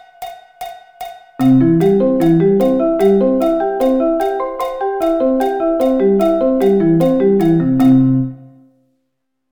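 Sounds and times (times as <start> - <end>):
C arpeggio inversions: 1.4 - 8.6.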